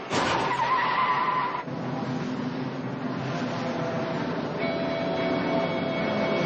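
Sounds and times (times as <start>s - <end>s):
Lincoln car driving out of a garage: 0.0s - 6.4s
high whining tone: 4.6s - 6.4s.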